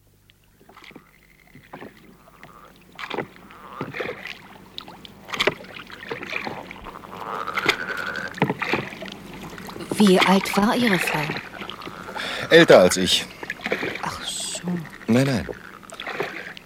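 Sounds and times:
rowing boat on water: 0.0 - 16.6
speech: 10.0 - 11.5, 12.5 - 13.4, 14.6 - 15.6.

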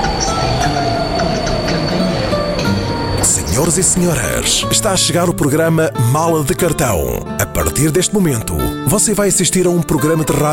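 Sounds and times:
train wheel squeals: 0.0 - 4.8
Intercity passenger train running on rails on a long-distance run: 0.0 - 6.0
speech: 3.6 - 10.5.

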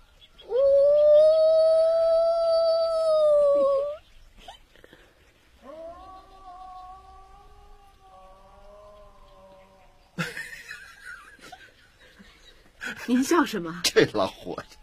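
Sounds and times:
person imitating a wolf cub howl: 0.4 - 4.0, 5.6 - 10.0
laughter: 10.2 - 13.2
speech: 13.1 - 14.8.

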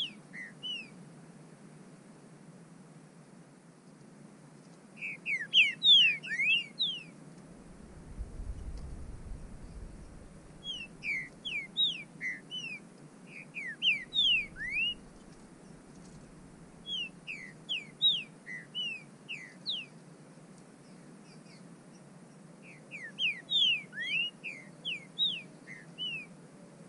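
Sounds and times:
bird whistling calls: 0.0 - 1.0, 5.0 - 7.1, 9.6 - 20.0, 22.6 - 26.3.

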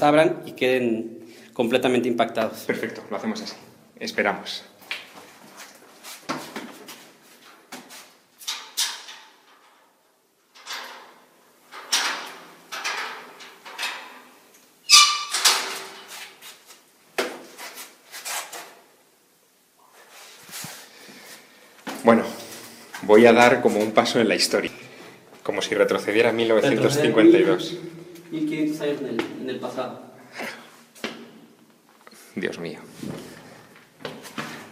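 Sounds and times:
speech: 0.0 - 5.0, 23.1 - 24.7, 25.6 - 30.5, 32.4 - 33.3
door creaking open: 10.6 - 16.3.

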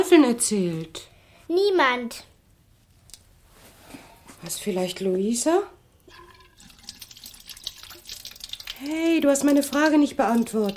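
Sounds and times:
speech: 0.0 - 2.3, 4.4 - 5.8, 8.8 - 10.7
water running from a tap while a woman washes her face: 6.0 - 10.7.

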